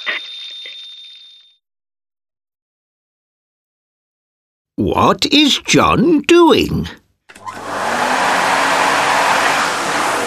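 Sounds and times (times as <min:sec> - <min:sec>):
speech: 0:04.8 - 0:07.0
vacuum cleaner running: 0:07.4 - 0:10.2.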